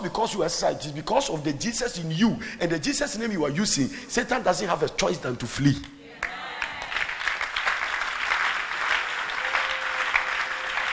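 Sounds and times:
speech: 0.0s - 6.0s
weak clapping: 6.2s - 10.9s.

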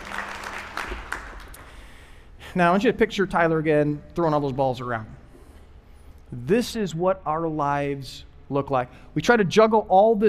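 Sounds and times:
audience applause: 0.0s - 1.8s
speech: 2.6s - 5.2s, 6.3s - 10.2s.

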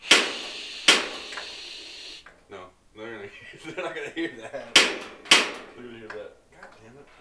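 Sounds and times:
propane heater igniter clicking: 0.0s - 1.6s, 4.8s - 6.2s
laughter: 3.2s - 4.8s
speech: 3.3s - 7.2s.

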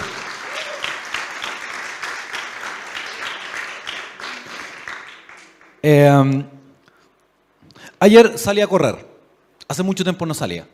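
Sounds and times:
crowd applauding: 0.0s - 5.8s
speech: 5.8s - 6.6s, 8.0s - 9.1s, 9.7s - 10.7s.

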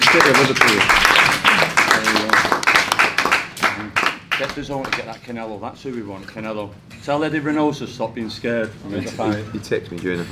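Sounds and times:
round of applause: 0.0s - 5.1s
speech: 0.1s - 1.3s, 4.4s - 10.2s.

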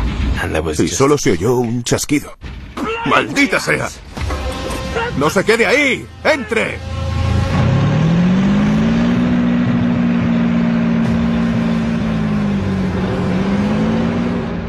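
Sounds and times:
speech: 0.4s - 4.0s, 5.2s - 6.9s
German armored vehicle engine droning: 4.0s - 14.6s.

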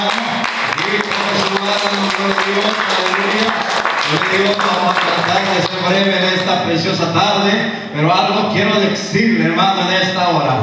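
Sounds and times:
audience clapping: 0.0s - 6.6s
speech: 1.7s - 3.4s, 4.1s - 10.6s.

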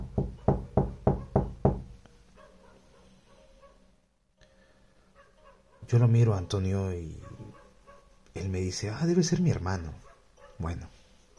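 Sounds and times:
knocking on door: 0.0s - 1.9s
speech: 5.9s - 7.3s, 8.4s - 10.0s, 10.6s - 10.9s.

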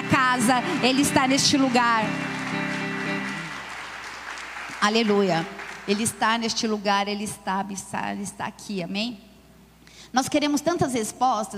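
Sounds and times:
audience applause: 0.0s - 6.3s
speech: 0.2s - 2.3s, 4.8s - 9.3s, 10.1s - 11.5s.

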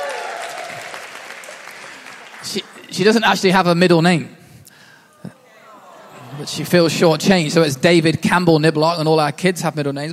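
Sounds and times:
audience applause: 0.0s - 3.3s, 5.9s - 8.0s
speech: 2.4s - 4.4s, 6.4s - 10.1s
laughter: 5.1s - 8.5s.

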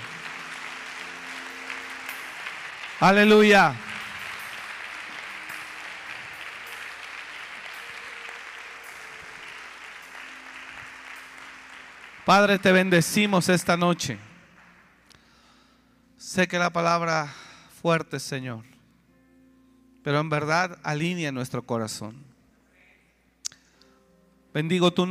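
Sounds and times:
audience applauding loudly: 0.0s - 15.2s
speech: 3.0s - 3.8s, 12.3s - 14.3s, 16.3s - 18.7s, 20.0s - 22.3s, 24.5s - 25.0s.

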